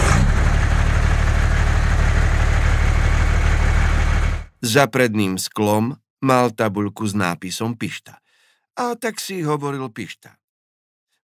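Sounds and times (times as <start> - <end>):
excavator engine idling: 0.0 - 4.5
speech: 4.6 - 8.2, 8.8 - 10.4.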